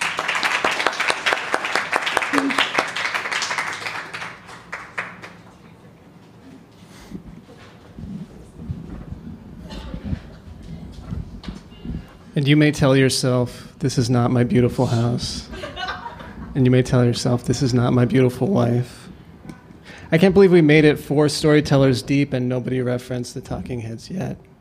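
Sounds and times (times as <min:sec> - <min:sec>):
audience applause: 0:00.0 - 0:05.5
speech: 0:12.4 - 0:15.6, 0:16.6 - 0:19.0, 0:20.1 - 0:24.5
laughter: 0:14.9 - 0:16.6.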